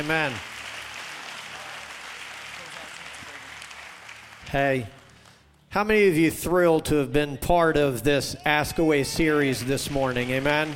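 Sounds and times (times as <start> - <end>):
speech: 0.0 - 0.5, 4.5 - 5.0, 5.7 - 10.7
large audience applause: 0.0 - 5.4, 9.2 - 10.7.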